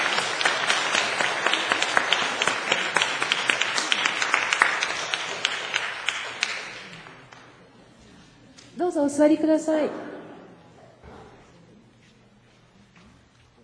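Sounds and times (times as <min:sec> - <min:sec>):
congregation applauding at a church service honoring the elderly: 0:00.0 - 0:07.4
speech: 0:09.0 - 0:10.1.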